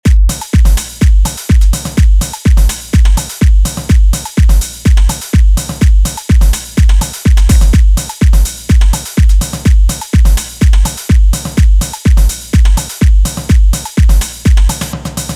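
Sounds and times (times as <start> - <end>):
house music: 0.0 - 15.3.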